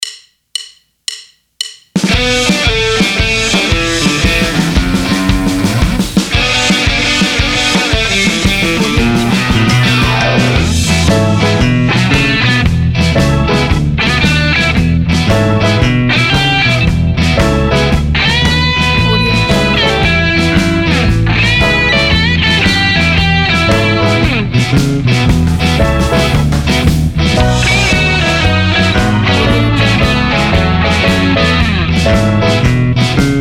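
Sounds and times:
blues music in a bar: 1.9s - 33.4s.

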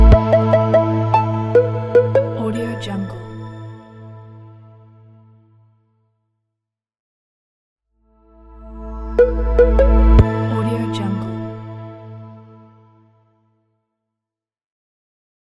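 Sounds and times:
catchy logo jingle: 0.1s - 3.8s, 8.8s - 11.7s.

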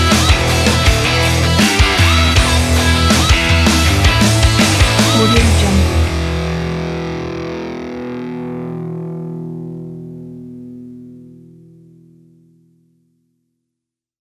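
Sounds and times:
rock music: 0.0s - 11.1s.

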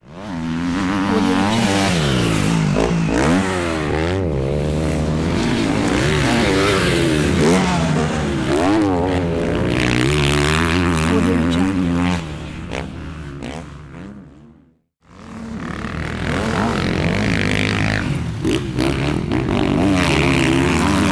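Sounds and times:
motocross race motorcycles: 0.0s - 21.1s.

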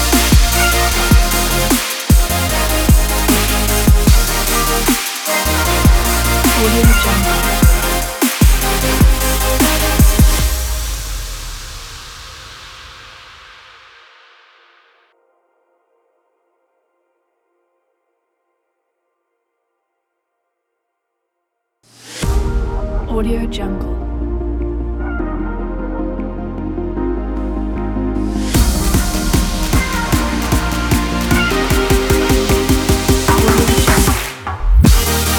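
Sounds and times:
summer future bass music: 0.0s - 11.9s, 22.2s - 35.3s.

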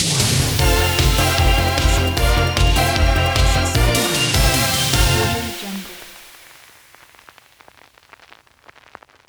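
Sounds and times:
happy synthwave logo sting: 0.5s - 6.5s.

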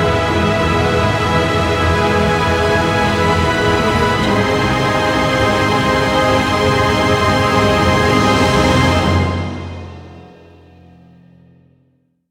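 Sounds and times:
triumphant epic hero music: 0.0s - 9.8s.

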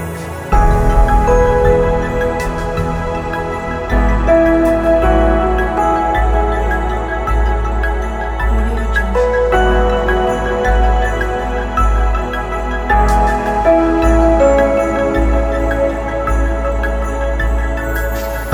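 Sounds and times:
documentary soundscape piano: 0.0s - 18.5s.

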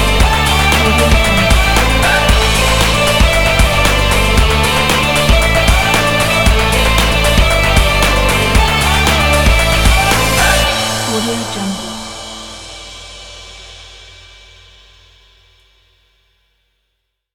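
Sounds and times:
breakbeat indie rock music: 0.0s - 12.7s.

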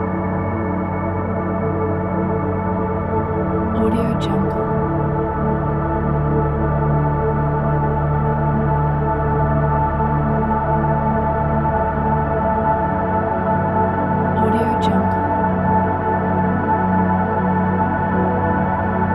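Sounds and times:
peaceful ambient background: 0.0s - 19.1s.

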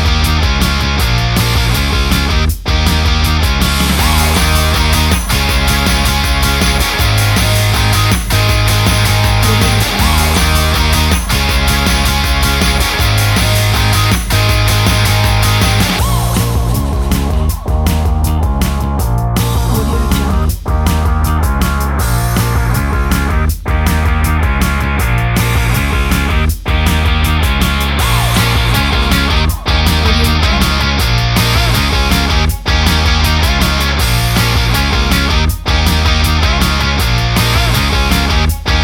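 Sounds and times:
upbeat happy indie music: 0.0s - 38.8s.

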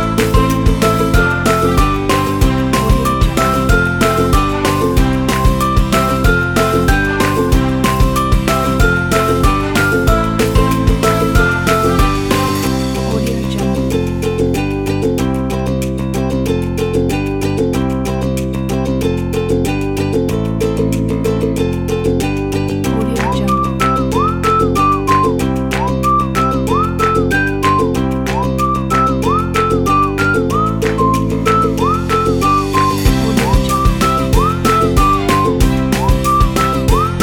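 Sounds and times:
upbeat whistle: 0.0s - 12.7s, 22.9s - 37.2s
ukulele: 0.0s - 37.2s.

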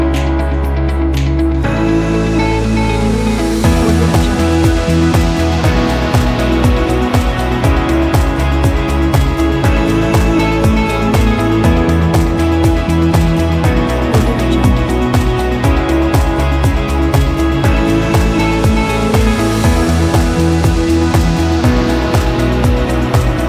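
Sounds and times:
inspiring uplifting corporate music: 0.0s - 23.4s.

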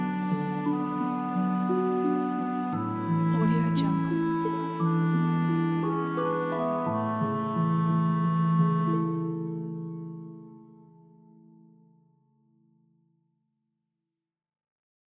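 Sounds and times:
lullaby music: 0.0s - 12.0s.

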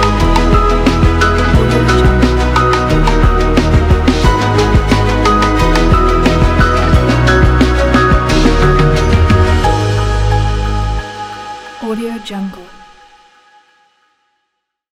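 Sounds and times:
emotional beat: 0.0s - 11.8s.

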